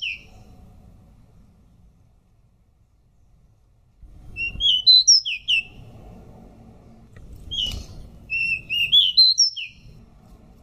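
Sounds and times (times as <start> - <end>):
Pied bush chat song: 0.0 - 0.5, 4.3 - 5.9, 7.4 - 10.0.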